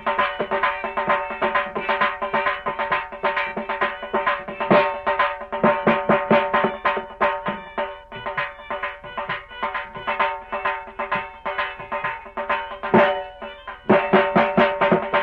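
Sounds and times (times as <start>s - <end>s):
Punjabi dhol instrumental: 0.0s - 15.2s.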